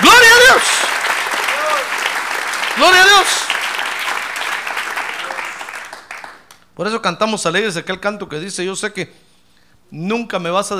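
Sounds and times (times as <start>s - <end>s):
audience applause: 0.0s - 6.5s
speech: 2.8s - 3.5s, 6.8s - 9.3s, 9.9s - 10.7s.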